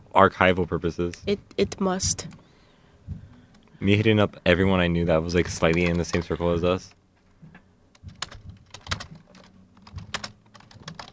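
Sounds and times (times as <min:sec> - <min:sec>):
speech: 0:00.2 - 0:02.4, 0:03.8 - 0:07.0
rapid typing on a computer keyboard: 0:05.5 - 0:06.5, 0:07.9 - 0:11.1.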